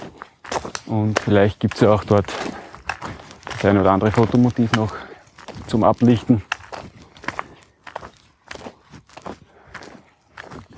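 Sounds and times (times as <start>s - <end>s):
footsteps on a hiking trail near the Sooßer Lindkogel: 0.0s - 10.7s
speech: 0.9s - 2.6s, 3.6s - 5.0s, 5.7s - 6.5s.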